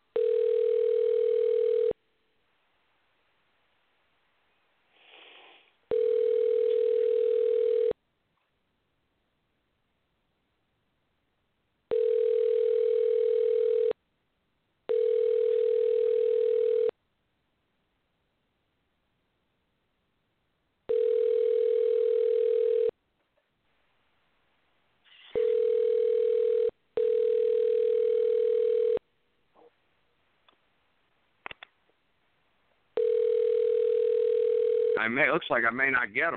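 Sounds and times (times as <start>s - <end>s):
telephone line tone while a number is dialed: 0.2s - 2.0s, 5.9s - 8.0s, 11.9s - 14.0s, 14.9s - 16.9s, 20.9s - 22.9s, 25.4s - 29.0s, 33.0s - 35.0s
speech: 35.1s - 36.3s.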